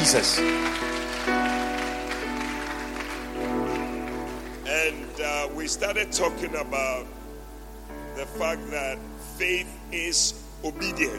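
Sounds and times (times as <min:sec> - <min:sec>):
speech: 0:00.0 - 0:01.4, 0:04.9 - 0:07.2, 0:08.2 - 0:11.1
audience clapping: 0:00.0 - 0:05.1
low musical tone: 0:00.0 - 0:11.1.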